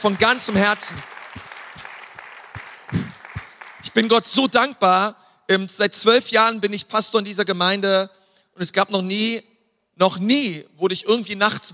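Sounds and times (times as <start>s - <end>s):
speech: 0.0s - 1.2s, 4.0s - 11.7s
audience applauding: 0.0s - 4.3s.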